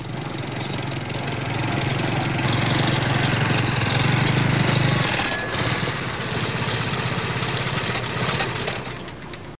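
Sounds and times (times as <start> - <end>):
trucks: 0.0 - 9.5.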